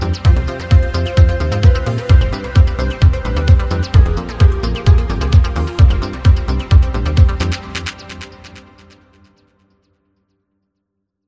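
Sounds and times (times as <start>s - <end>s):
bass: 0.0s - 8.9s.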